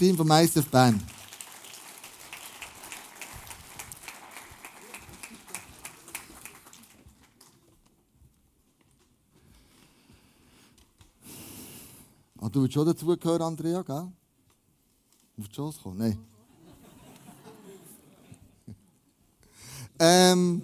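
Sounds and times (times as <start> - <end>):
speech: 0.0 - 1.1, 12.5 - 14.2, 15.4 - 16.3, 20.0 - 20.6
audience applause: 0.6 - 7.6
laughter: 4.8 - 6.5, 16.4 - 18.9.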